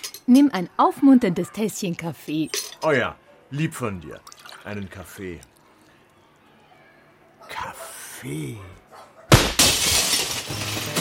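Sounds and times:
speech: 0.3s - 5.5s, 7.5s - 8.8s
glass shards tinkling: 2.4s - 2.9s, 9.6s - 10.9s
kitchen window pane shattering into pieces: 9.3s - 10.9s.

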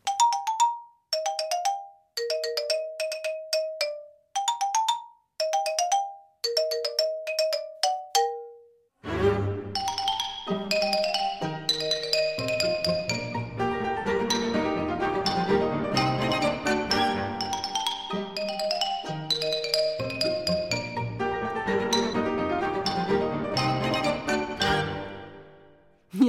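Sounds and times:
xylophone melody: 0.0s - 8.9s, 9.7s - 25.6s
full orchestra with strings and winds: 9.0s - 19.4s, 20.2s - 25.6s.

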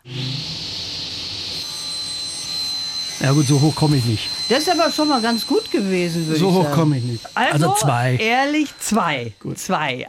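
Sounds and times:
person imitating a circular saw: 3.1s - 10.0s
speech: 3.2s - 10.0s.

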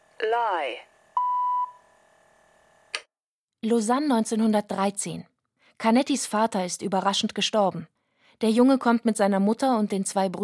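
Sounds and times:
speech: 0.2s - 0.9s, 3.6s - 10.4s
signal tone for a pronunciation exercise: 1.2s - 1.8s.

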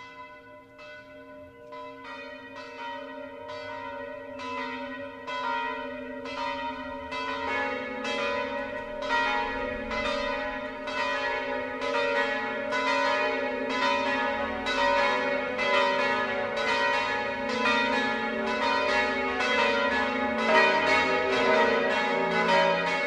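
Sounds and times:
church bells pealing at midday: 0.0s - 23.0s.

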